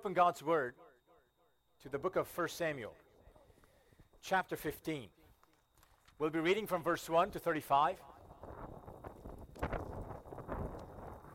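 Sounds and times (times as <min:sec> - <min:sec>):
speech: 0:00.0 - 0:00.8, 0:01.8 - 0:03.0, 0:04.2 - 0:05.2, 0:06.2 - 0:08.6
wind buffeting the microphone: 0:08.2 - 0:11.3.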